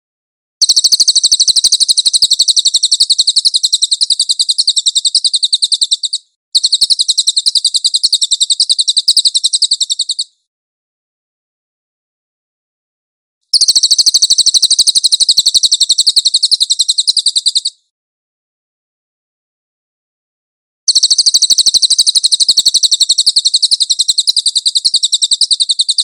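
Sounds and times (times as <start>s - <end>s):
velvet-fronted nuthatch high rapid trill: 0.6s - 10.3s, 13.5s - 17.7s, 20.9s - 26.0s.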